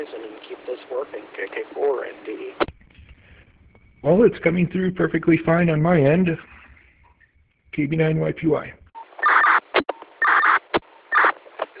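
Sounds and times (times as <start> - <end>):
speech: 0.0 - 2.7, 4.0 - 6.6, 7.8 - 8.8
MDC radio data burst chirp: 2.3 - 11.4.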